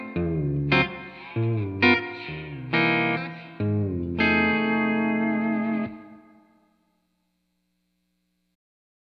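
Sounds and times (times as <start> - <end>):
steel guitar in a factory room: 0.0 - 6.6.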